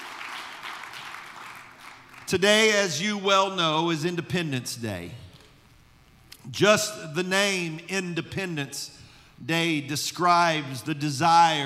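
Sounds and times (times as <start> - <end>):
crowd applauding: 0.0 - 2.4
speech: 2.3 - 5.2, 6.5 - 11.6.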